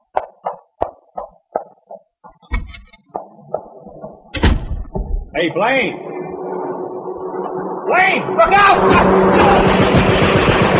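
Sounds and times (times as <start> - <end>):
footsteps: 0.0 - 5.3
door opening with a heavy thud and rattle: 2.4 - 3.1, 4.3 - 5.3
door slamming shut: 4.3 - 5.3
speech: 5.4 - 6.1, 7.9 - 9.9.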